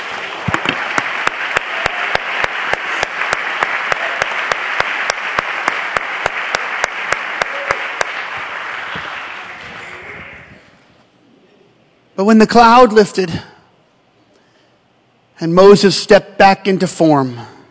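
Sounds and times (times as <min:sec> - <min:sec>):
crowd clapping rhythmically: 0:00.0 - 0:10.7
speech: 0:12.2 - 0:13.5, 0:15.4 - 0:17.5.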